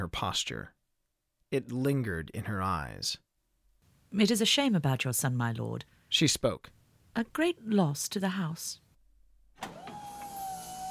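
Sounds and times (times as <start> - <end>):
speech: 0.0 - 0.8, 1.5 - 3.3, 4.1 - 8.8
motorized chair chugging and whirring: 9.6 - 10.8.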